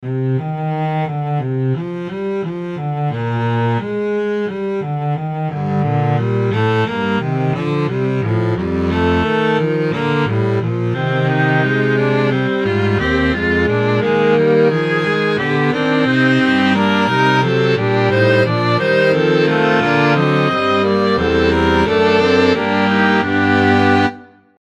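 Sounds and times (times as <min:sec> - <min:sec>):
fugue: 0:00.0 - 0:24.6.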